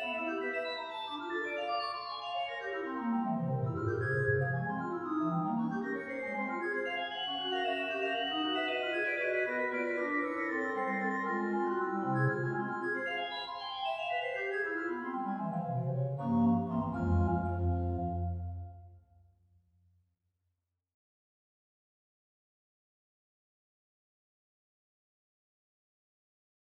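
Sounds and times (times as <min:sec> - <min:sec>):
musical prelude: 0:00.0 - 0:19.0.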